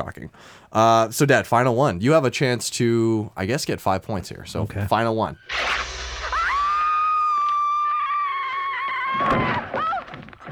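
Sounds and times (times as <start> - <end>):
speech: 0.0 - 6.0
horror movie scream: 5.4 - 10.5
rough noisy thumps: 5.5 - 10.5.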